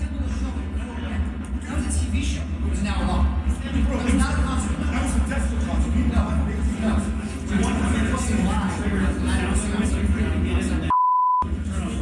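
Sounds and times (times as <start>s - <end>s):
noisy talk in a stairwell: 0.0s - 12.0s
censor bleep over a swear word: 10.9s - 11.5s.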